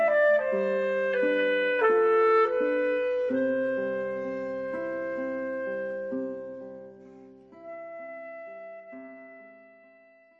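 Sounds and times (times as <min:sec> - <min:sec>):
clarinet: 0:00.0 - 0:10.3
guitar: 0:00.0 - 0:10.3.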